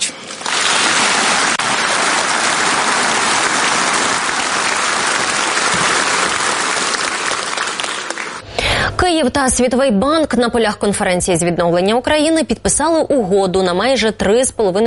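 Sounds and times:
applause in a conference hall: 0.3s - 8.4s
speech: 9.1s - 14.8s.

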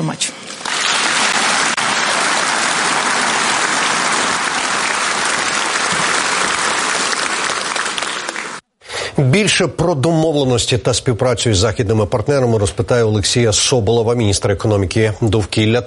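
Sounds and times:
speech: 0.0s - 0.4s, 9.2s - 15.8s
applause in a hall: 0.5s - 8.6s.

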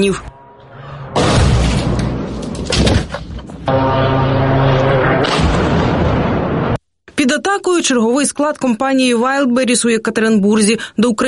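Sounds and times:
speech: 0.0s - 0.3s, 7.2s - 11.2s
explosion: 1.0s - 6.8s.

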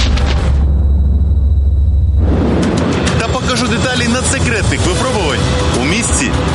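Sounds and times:
explosive charge detonation: 0.0s - 3.9s
thin high whine: 0.0s - 6.5s.

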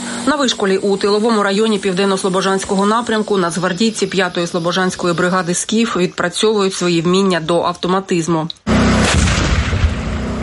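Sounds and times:
speech: 0.2s - 8.8s
tank firing 125-mm gun: 9.0s - 10.3s.

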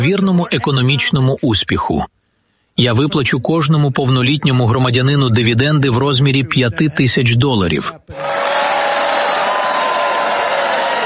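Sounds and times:
speech: 0.0s - 2.2s, 2.8s - 8.6s
faint cheers and murmuring: 8.1s - 11.0s
restrained applause from supporters at rally: 8.1s - 11.0s.

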